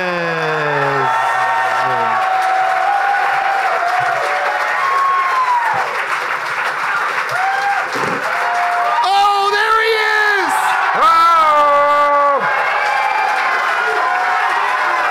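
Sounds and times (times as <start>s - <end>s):
crowd applauding: 0.0s - 15.1s.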